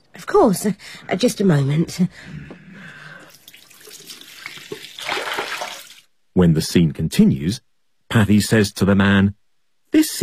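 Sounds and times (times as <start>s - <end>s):
speech: 0.3s - 2.5s, 6.4s - 10.2s
water running from a tap to fill a glass: 3.3s - 6.0s.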